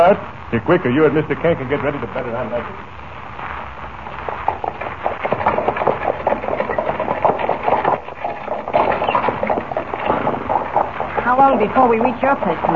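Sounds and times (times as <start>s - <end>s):
speech: 0.0s - 3.0s, 11.4s - 12.7s
horse-drawn buckboard wagon rattling and bouncing: 4.4s - 12.7s.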